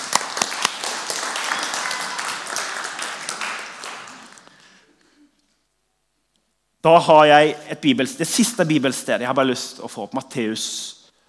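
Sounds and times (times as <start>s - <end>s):
audience applause: 0.0s - 4.6s
speech: 6.8s - 11.0s.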